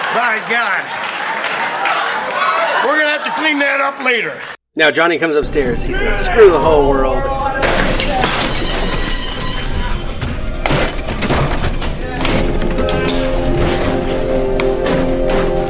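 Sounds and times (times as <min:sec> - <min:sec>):
speech: 0:00.2 - 0:01.9, 0:02.8 - 0:07.4
things knocked off a dresser: 0:07.6 - 0:15.6.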